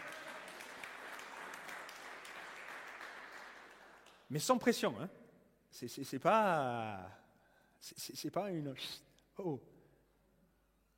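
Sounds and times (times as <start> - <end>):
applause: 0.0 - 4.8
speech: 4.3 - 7.2, 7.8 - 9.7.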